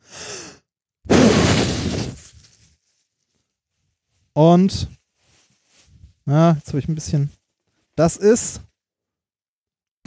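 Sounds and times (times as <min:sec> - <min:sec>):
breathy intake: 0:00.0 - 0:02.1
forceful puff blown into a bag: 0:01.1 - 0:02.6
speech: 0:04.4 - 0:05.0, 0:06.3 - 0:07.4, 0:08.0 - 0:08.7.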